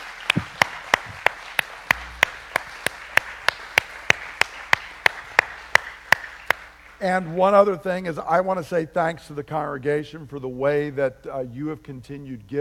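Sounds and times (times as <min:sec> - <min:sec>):
round of applause: 0:00.0 - 0:07.3
speech: 0:07.0 - 0:12.6.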